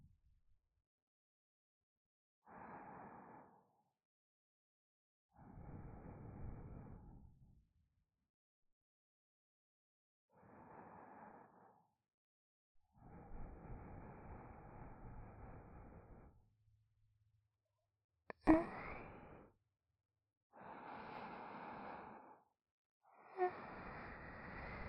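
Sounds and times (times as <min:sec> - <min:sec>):
sleeping breath in the left ear: 0:02.5 - 0:03.7, 0:05.4 - 0:07.2, 0:10.4 - 0:11.8, 0:13.0 - 0:16.4, 0:18.3 - 0:19.5, 0:20.5 - 0:22.5, 0:23.1 - 0:24.8.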